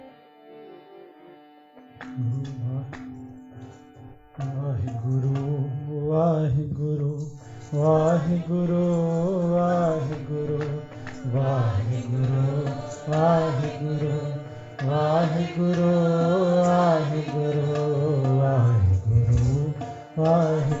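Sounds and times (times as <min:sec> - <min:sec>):
kirtan devotional singing: 0:04.5 - 0:20.7.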